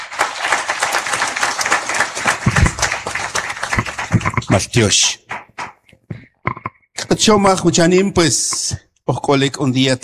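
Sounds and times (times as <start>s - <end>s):
applause: 0.0s - 5.8s
speech: 4.5s - 5.2s, 7.2s - 10.0s.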